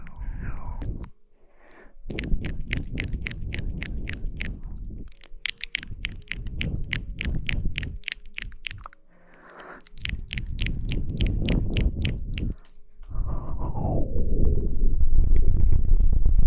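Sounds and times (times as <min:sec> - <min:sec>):
loud dense low rushing blow: 0:00.0 - 0:05.2, 0:05.8 - 0:16.3
mouth clicks: 0:00.0 - 0:12.8.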